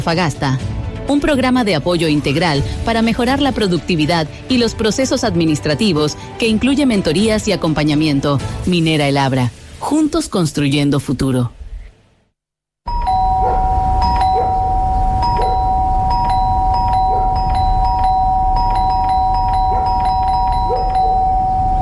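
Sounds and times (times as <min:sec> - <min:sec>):
speech: 0:00.0 - 0:11.6
doorbell chiming: 0:12.9 - 0:21.7.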